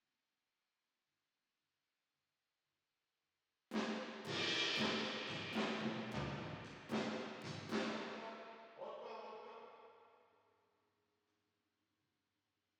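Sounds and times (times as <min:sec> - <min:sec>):
drums with reverb: 0:03.7 - 0:08.5.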